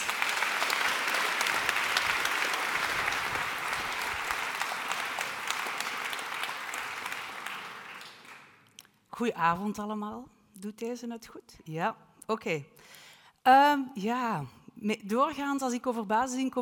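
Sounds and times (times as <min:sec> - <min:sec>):
warm applause: 0:00.0 - 0:08.7
speech: 0:09.2 - 0:16.5.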